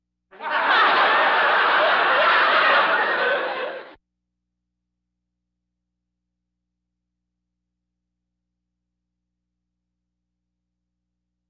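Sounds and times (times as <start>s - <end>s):
audience laughter: 0.4s - 4.0s.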